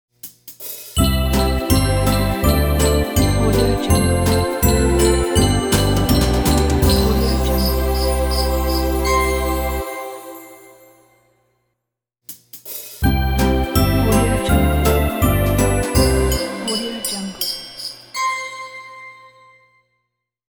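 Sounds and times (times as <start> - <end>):
sleigh night sound logo: 1.0 - 10.9, 13.0 - 18.6.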